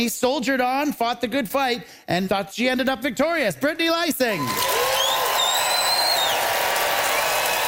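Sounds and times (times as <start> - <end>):
speech: 0.0 - 5.0
crowd applauding: 4.4 - 7.6
high sliding whistles: 4.9 - 6.4.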